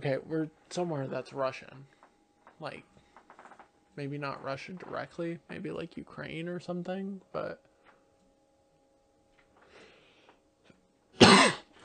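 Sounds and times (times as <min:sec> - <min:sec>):
speech: 0:00.0 - 0:02.0, 0:02.6 - 0:03.0, 0:04.0 - 0:07.7
sneeze: 0:11.2 - 0:11.7.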